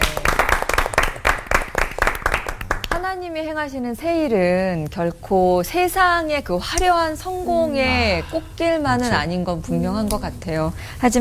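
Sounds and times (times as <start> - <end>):
small group clapping: 0.0 - 3.1
speech: 3.1 - 11.1.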